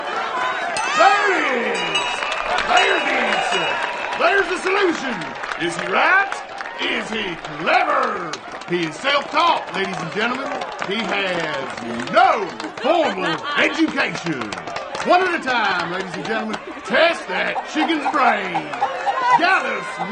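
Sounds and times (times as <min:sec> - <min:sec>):
laughter: 0:00.9 - 0:20.1
chicken at a fair attraction: 0:17.6 - 0:20.1.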